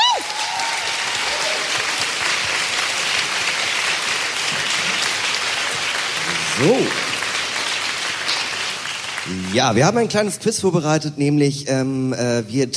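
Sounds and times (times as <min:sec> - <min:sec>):
audience applause: 0:00.0 - 0:10.2
speech: 0:06.6 - 0:07.0, 0:09.3 - 0:12.7.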